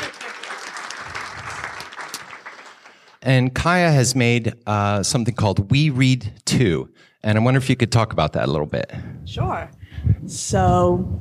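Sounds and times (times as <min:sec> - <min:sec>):
audience round of applause: 0:00.0 - 0:03.2
speech: 0:03.2 - 0:11.2.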